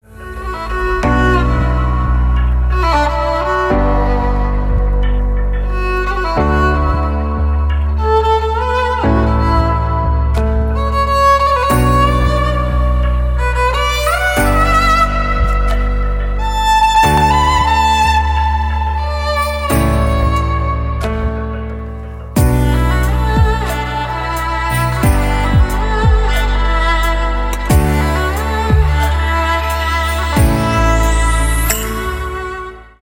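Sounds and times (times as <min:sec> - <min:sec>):
violin playing: 0:00.0 - 0:33.0.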